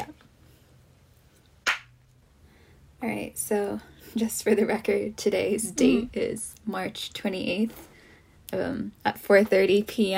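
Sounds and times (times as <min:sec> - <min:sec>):
single hand clap for audio sync: 0:01.6 - 0:01.9
speech: 0:03.0 - 0:07.9, 0:08.5 - 0:10.1.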